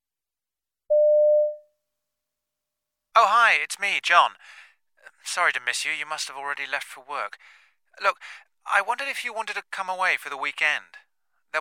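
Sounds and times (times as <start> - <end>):
telephone answering machine beep: 0.9 - 1.6
speech: 3.2 - 4.6, 5.2 - 11.5.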